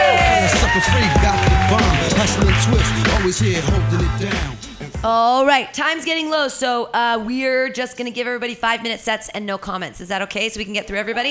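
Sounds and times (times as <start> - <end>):
whoops and shouts: 0.0 - 2.2
crowd clapping: 0.0 - 3.7
speech: 0.8 - 1.2, 2.6 - 11.2.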